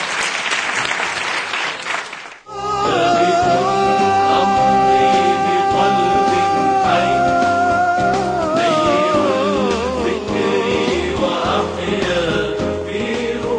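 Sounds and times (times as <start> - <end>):
audience clapping after an acting exercise: 0.0 - 2.5
music with steady beat: 2.8 - 13.5.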